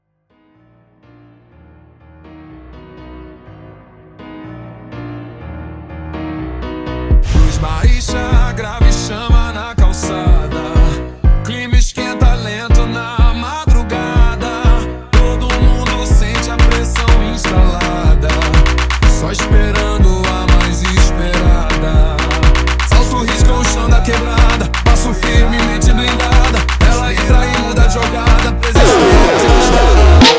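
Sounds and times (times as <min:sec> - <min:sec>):
slowed funk music: 0:06.9 - 0:30.3.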